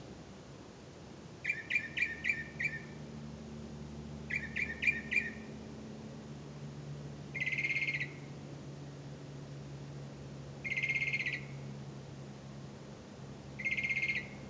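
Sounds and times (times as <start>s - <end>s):
low hum: 0.0s - 14.4s
bird clipped and buzzy calls: 1.4s - 3.0s, 4.2s - 5.6s, 7.3s - 8.4s, 10.6s - 11.7s, 13.6s - 14.4s.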